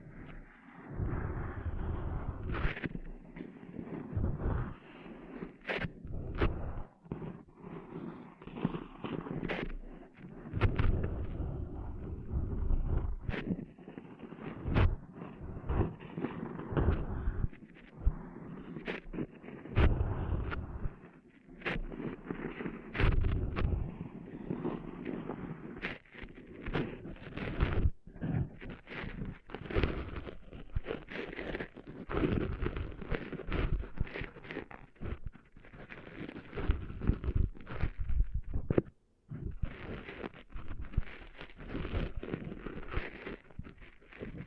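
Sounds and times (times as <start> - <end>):
muffled rubbing and scraping of sand cleaned out of an ear: 0.0 - 44.4
sharp clicks and pops: 8.4 - 44.4.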